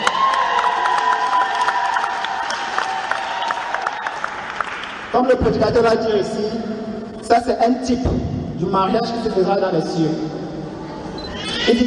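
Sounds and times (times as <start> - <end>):
audience cheering and shouting acclamations: 0.0 - 5.0
speech: 5.2 - 10.4, 11.7 - 11.8.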